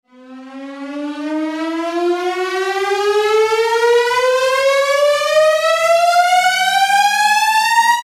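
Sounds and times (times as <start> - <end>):
tension music: 0.2 - 7.9.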